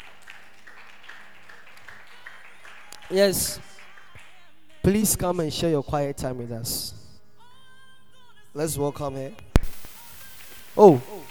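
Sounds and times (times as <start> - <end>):
group of people clapping: 0.0 - 5.5, 9.6 - 11.3
speech: 3.1 - 3.7, 4.9 - 7.0, 8.5 - 9.5, 10.8 - 11.3.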